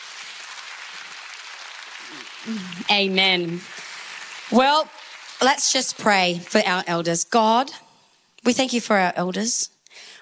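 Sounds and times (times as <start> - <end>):
audience applauding: 0.0 - 6.0
speech: 2.1 - 3.8, 4.5 - 7.8, 8.4 - 10.1.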